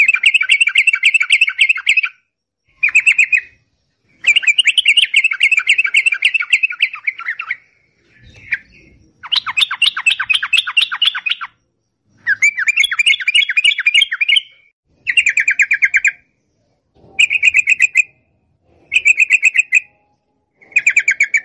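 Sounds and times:
yellow-vented bulbul singing long rolling song: 0:00.0 - 0:21.4.

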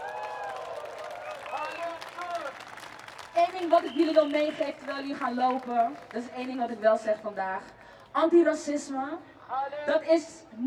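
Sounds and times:
crowd applauding at a demonstration: 0:00.0 - 0:07.3
speech: 0:03.4 - 0:10.6.

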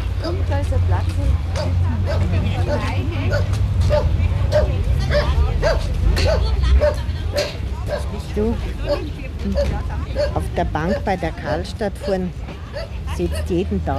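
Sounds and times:
speech: 0:00.5 - 0:07.6, 0:08.4 - 0:13.9
dog barking: 0:01.6 - 0:08.2, 0:08.8 - 0:09.0, 0:09.6 - 0:13.9.

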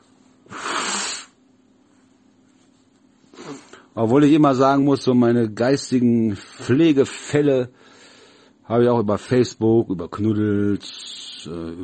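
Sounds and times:
person blowing nose: 0:00.4 - 0:01.4, 0:03.3 - 0:03.8
speech: 0:04.0 - 0:07.9, 0:08.7 - 0:11.8.

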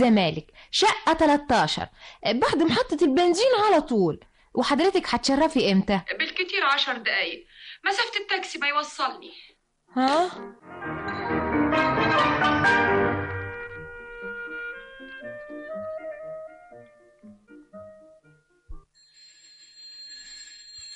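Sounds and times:
speech: 0:00.0 - 0:11.3
doorbell ringing: 0:11.0 - 0:12.4, 0:18.9 - 0:20.9.

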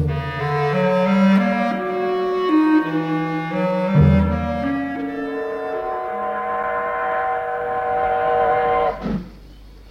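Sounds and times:
train whistle: 0:00.1 - 0:09.3
train departing a station: 0:03.1 - 0:09.6.

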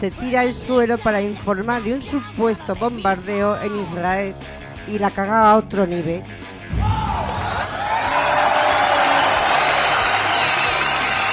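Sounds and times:
speech: 0:00.0 - 0:07.3
loud crowd applauding a journalist: 0:06.7 - 0:11.3.

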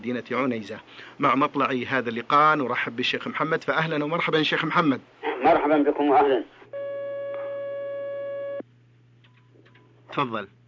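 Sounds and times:
speech: 0:00.0 - 0:06.6, 0:10.1 - 0:10.6
telephone line tone of an incoming call: 0:06.8 - 0:08.6.

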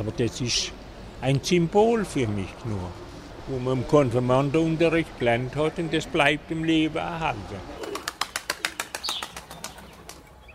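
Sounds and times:
speech: 0:00.0 - 0:07.8
pigeons flapping wings taking off: 0:07.8 - 0:10.3.

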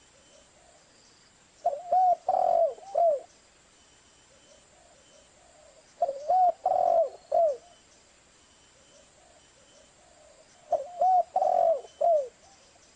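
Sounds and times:
spotted dove cooing on a lure recording: 0:01.6 - 0:03.3, 0:04.3 - 0:07.8, 0:08.8 - 0:12.7.

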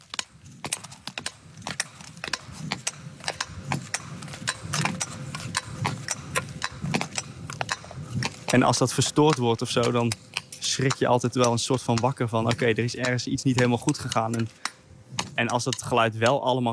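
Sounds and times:
ice skates scraping: 0:00.0 - 0:11.0
speech: 0:08.5 - 0:14.6, 0:15.4 - 0:16.7.

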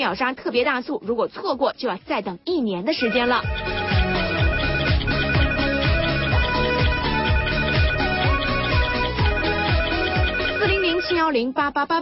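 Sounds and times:
speech: 0:00.0 - 0:03.8, 0:11.1 - 0:12.0
telephones ringing: 0:03.0 - 0:11.4.

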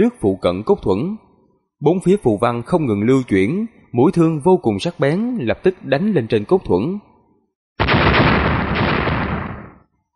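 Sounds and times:
speech: 0:00.0 - 0:01.2, 0:01.8 - 0:07.1
loud explosions: 0:07.8 - 0:09.9.

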